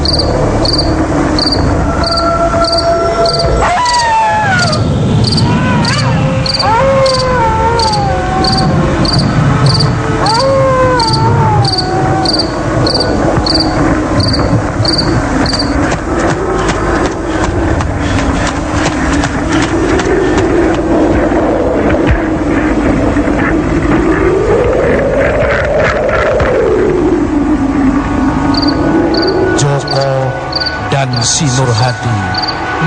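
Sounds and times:
night animals' rising and falling whistled calls: 0.0s - 15.8s, 28.5s - 31.4s, 32.3s - 32.7s
crickets chirping at night in a village: 0.0s - 16.0s, 28.2s - 32.7s
low rumbling background: 0.0s - 32.8s
wind blowing: 0.0s - 32.8s
speech: 0.1s - 1.2s.

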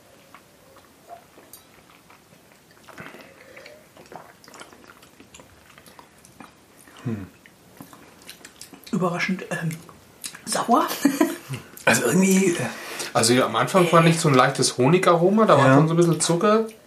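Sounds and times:
drink being sipped and swallowed: 0.2s - 9.0s
speech: 7.1s - 7.4s, 9.0s - 9.9s, 10.5s - 16.8s.

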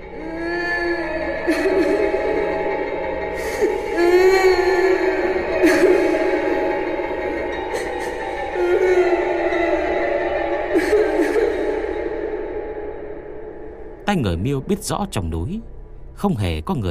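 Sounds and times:
eerie mournful wailing cries in a deep forest: 0.0s - 13.3s
speech: 14.1s - 16.8s.

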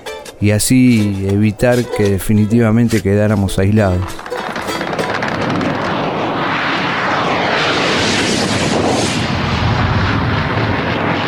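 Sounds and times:
speech: 0.4s - 4.2s
heavy rumbling and crackling bursts: 2.9s - 11.2s
English warplane engines roaring overhead during an air attack on an open field: 3.6s - 11.2s.

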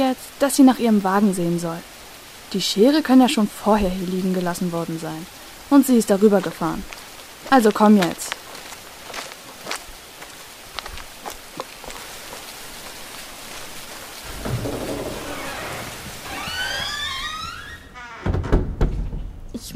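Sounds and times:
heavy rain: 0.0s - 18.2s
speech: 0.1s - 1.9s, 2.5s - 8.4s
thunder rumbling: 14.2s - 16.6s.

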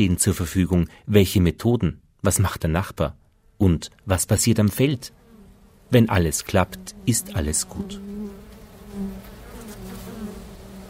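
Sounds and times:
speech: 0.0s - 5.2s, 5.9s - 8.4s
honeybee colony buzzing at hive entrance in spring: 4.4s - 10.8s.

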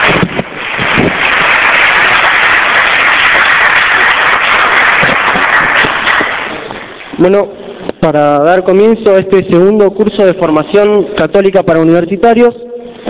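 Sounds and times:
audience applause: 0.0s - 7.2s
speech: 7.2s - 13.0s.

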